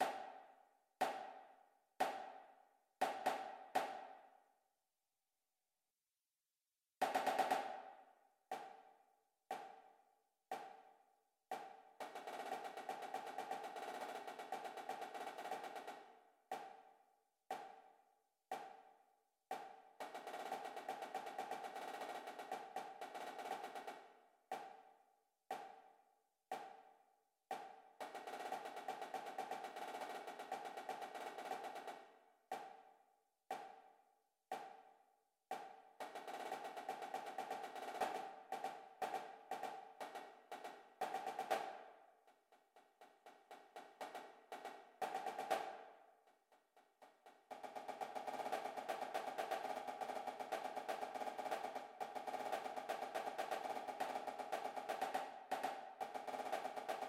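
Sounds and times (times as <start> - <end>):
snare drum: 0.0 - 0.4, 1.0 - 4.3, 7.0 - 8.9, 9.5 - 9.9, 10.5 - 10.9, 11.5 - 16.9, 17.5 - 17.8, 19.5 - 24.8, 25.5 - 25.8, 27.5 - 32.9, 34.5 - 34.9, 35.5 - 42.1, 43.0 - 46.0, 47.0 - 57.0.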